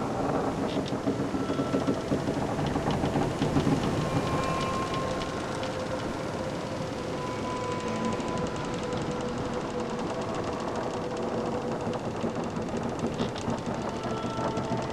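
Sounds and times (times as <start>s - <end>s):
ambience aboard a drakkar: 0.0s - 14.9s.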